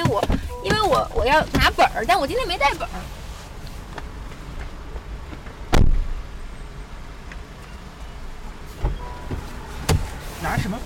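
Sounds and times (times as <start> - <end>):
car interior rumble and road hiss while driving: 0.0 - 10.8
speech: 1.0 - 3.2, 10.5 - 10.8.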